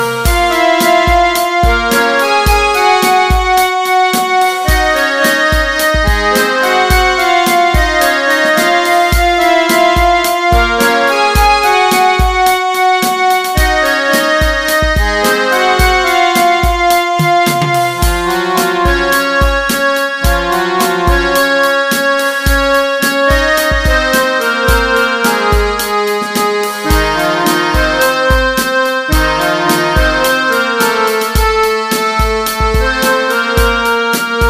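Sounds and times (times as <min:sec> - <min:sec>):
instrumental ringtone: 0:00.1 - 0:33.8.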